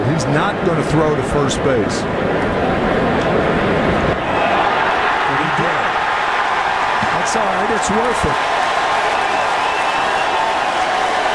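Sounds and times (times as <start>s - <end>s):
speech: 0.3s - 3.1s, 7.3s - 8.7s
stadium crowd applause at Wrigley: 4.2s - 11.3s.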